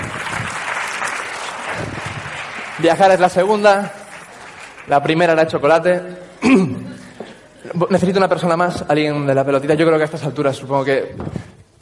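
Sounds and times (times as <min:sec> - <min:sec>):
audience applause: 0:00.0 - 0:05.4
speech: 0:02.8 - 0:04.0, 0:04.9 - 0:06.9, 0:07.6 - 0:11.7.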